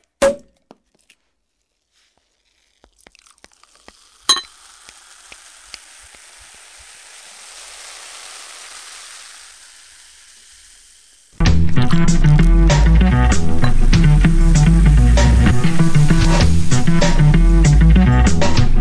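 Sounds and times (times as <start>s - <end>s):
drink being poured, splashing and fizzing: 1.8s - 18.7s
sharp clinks: 4.3s - 4.5s.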